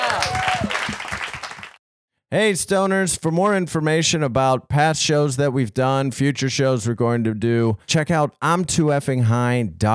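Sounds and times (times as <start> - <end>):
audience applause: 0.0 - 1.8
people cheering: 0.0 - 1.8
speech: 2.3 - 9.9.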